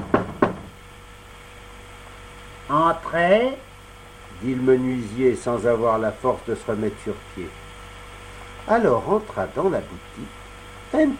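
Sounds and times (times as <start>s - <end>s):
knocking on a carpenter's shop door: 0.0s - 0.8s
speech: 2.7s - 3.7s, 4.4s - 7.6s, 8.7s - 11.1s.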